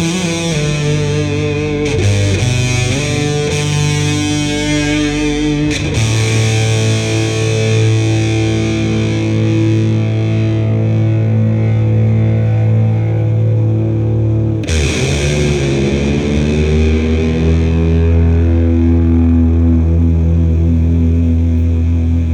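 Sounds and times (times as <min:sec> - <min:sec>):
distorted guitar through Boss HM2 and Twin Reverb amplifier: 0:00.0 - 0:22.3.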